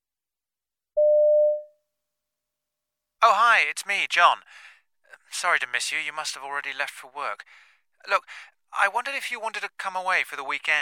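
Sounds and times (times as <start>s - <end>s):
telephone answering machine beep: 1.0s - 1.7s
speech: 3.2s - 4.7s, 5.3s - 10.7s.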